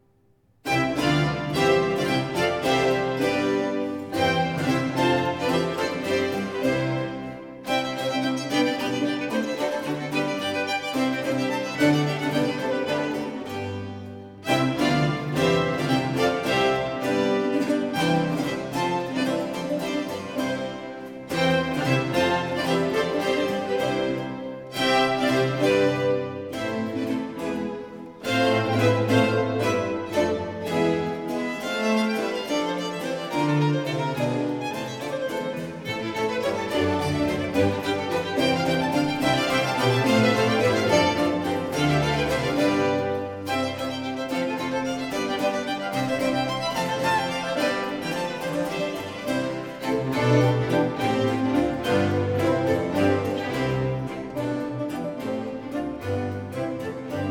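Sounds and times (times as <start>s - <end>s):
concerto fast movement: 0.0s - 57.2s.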